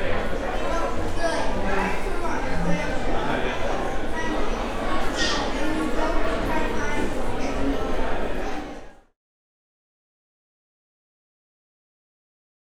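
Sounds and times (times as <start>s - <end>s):
cafeteria ambience: 0.0s - 9.0s.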